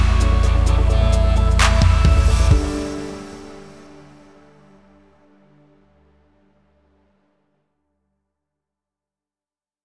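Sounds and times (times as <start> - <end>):
uplifting instrumental music: 0.0 - 5.3.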